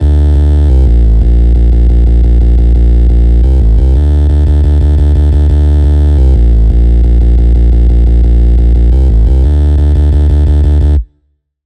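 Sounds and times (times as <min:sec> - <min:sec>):
bass: 0:00.0 - 0:11.2.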